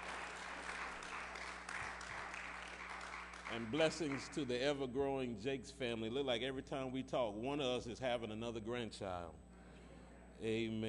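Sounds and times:
crowd applauding: 0:00.0 - 0:04.6
low steady hum: 0:00.0 - 0:10.8
speech: 0:03.5 - 0:09.4, 0:10.4 - 0:10.8.

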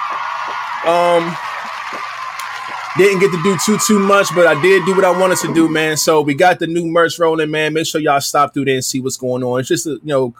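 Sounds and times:
audience applause: 0:00.0 - 0:06.2
people whooping: 0:00.0 - 0:06.5
speech: 0:00.5 - 0:02.1, 0:02.9 - 0:10.3.

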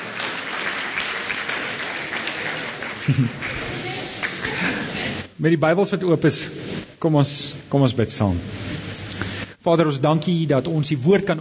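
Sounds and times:
audience clapping: 0:00.0 - 0:05.2
laughter: 0:02.4 - 0:05.3
speech: 0:03.1 - 0:03.8, 0:05.4 - 0:08.8, 0:09.6 - 0:11.3.

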